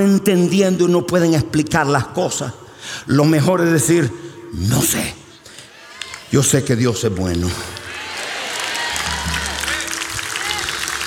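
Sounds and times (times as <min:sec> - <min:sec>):
speech: 0:00.0 - 0:05.2, 0:06.3 - 0:07.8
audience applause: 0:07.4 - 0:11.0.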